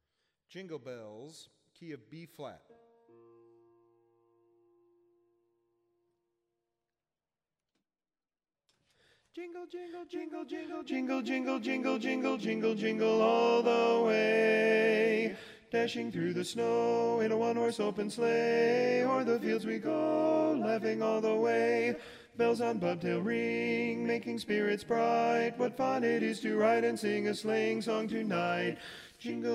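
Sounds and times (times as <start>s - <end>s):
baritone Christmas song: 9.0s - 29.5s.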